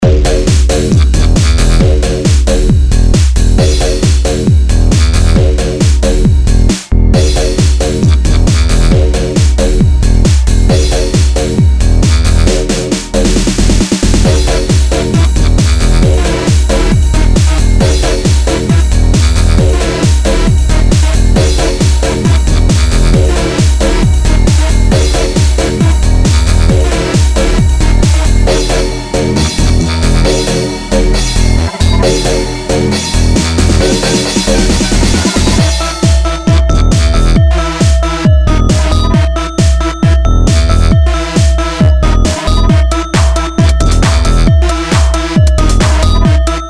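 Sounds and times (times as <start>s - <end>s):
techno music: 0.0s - 46.6s.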